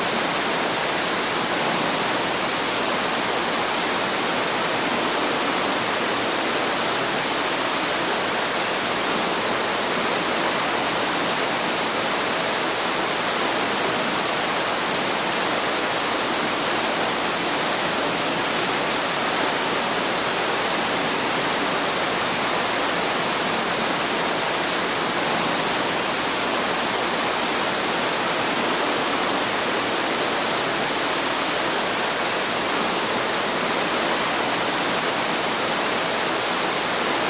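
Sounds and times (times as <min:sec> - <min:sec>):
underground river in a cave: 0:00.0 - 0:37.2
underground waterfall in a water cave: 0:00.0 - 0:37.2.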